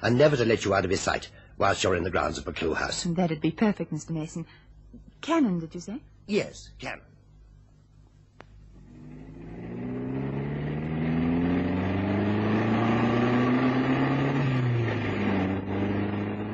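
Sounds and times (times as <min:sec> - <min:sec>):
speech: 0:00.0 - 0:07.1
car engine humming while driving: 0:08.6 - 0:16.5.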